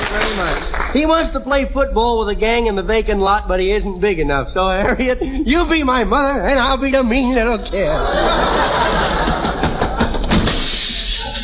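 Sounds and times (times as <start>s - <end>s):
speech: 0.1s - 8.9s
laughter: 4.8s - 5.8s, 7.6s - 11.4s
door slamming shut: 9.2s - 11.4s
knocks and rattles: 9.2s - 11.4s.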